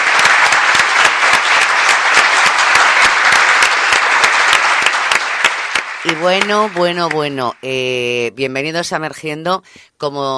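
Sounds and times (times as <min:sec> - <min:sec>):
applause sound effect: 0:00.0 - 0:07.8
speech: 0:06.0 - 0:10.3.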